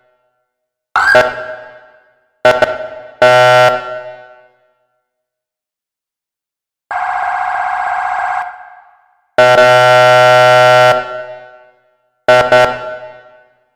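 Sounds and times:
ambulance siren in Cikarang: 1.0s - 4.0s, 6.9s - 11.2s.

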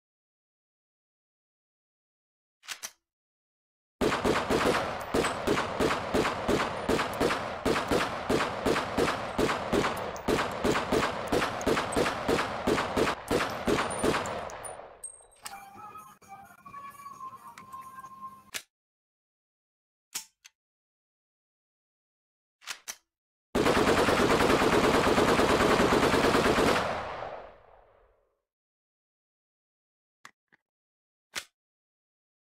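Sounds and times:
real AK-47 Kalashnikov rifle gunfire: 4.0s - 14.9s, 23.6s - 27.5s.

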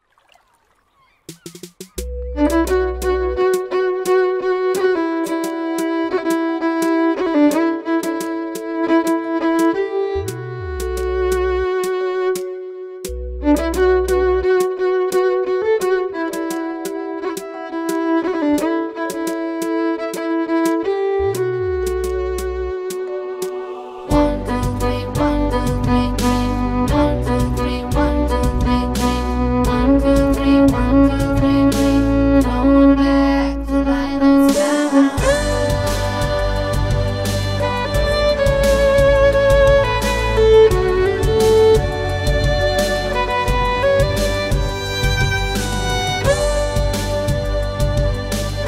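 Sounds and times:
violin cover: 2.0s - 48.6s.

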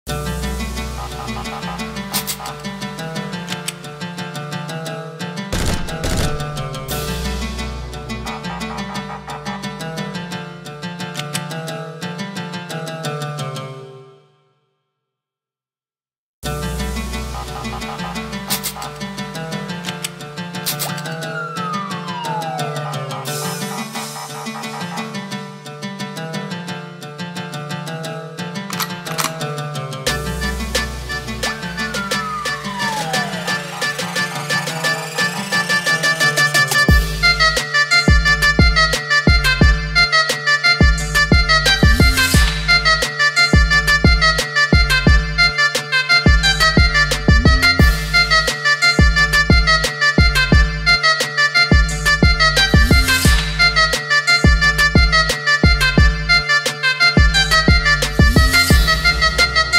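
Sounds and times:
zurna playing mafia music: 0.1s - 14.4s, 16.4s - 59.7s
gunfire: 5.6s - 6.8s
siren: 21.0s - 25.1s, 31.1s - 37.6s.

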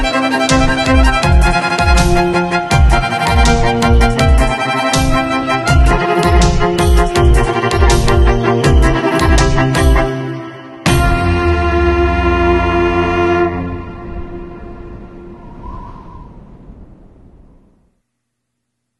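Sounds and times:
electric trio playing: 0.0s - 15.0s.

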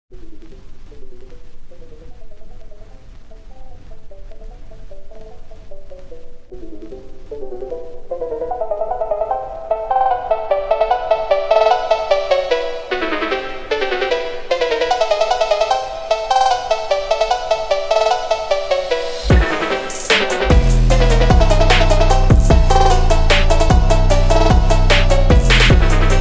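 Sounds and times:
phonk remix: 0.2s - 26.1s.

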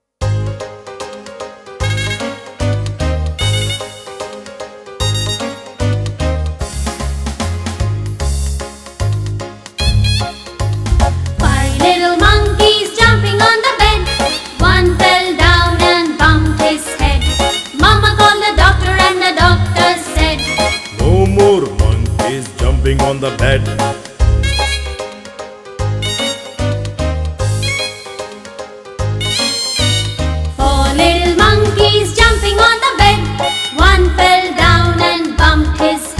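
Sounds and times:
English nursery rhyme song: 0.4s - 36.1s.

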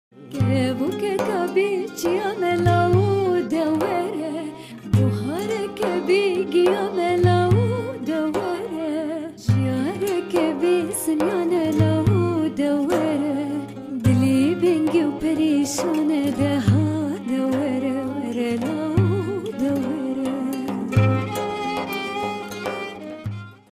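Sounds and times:
Kurmanji Kurdish song: 0.2s - 22.5s.

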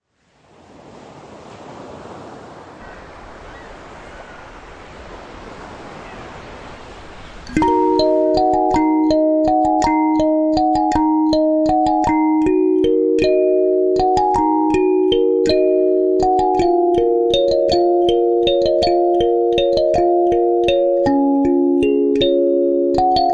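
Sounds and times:
kalimba melody: 7.5s - 23.3s.

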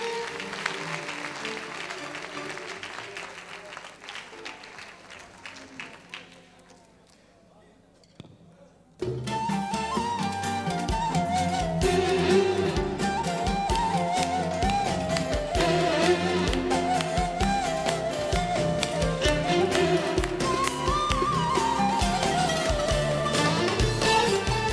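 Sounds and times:
audience applauding a composer and his colleagues: 0.0s - 7.0s, 12.6s - 24.7s
loud music: 9.3s - 24.7s.

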